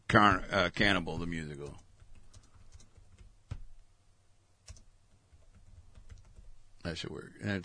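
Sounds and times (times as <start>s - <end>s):
speech: 0.1s - 1.9s, 6.8s - 7.6s
computer keyboard typing a search into a music player: 1.6s - 3.8s, 4.6s - 6.6s.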